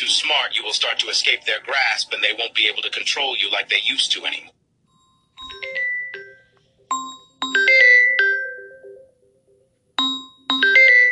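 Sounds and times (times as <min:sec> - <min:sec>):
speech: 0:00.0 - 0:04.6
phone ringing with incoming call: 0:04.9 - 0:09.2, 0:10.0 - 0:11.1.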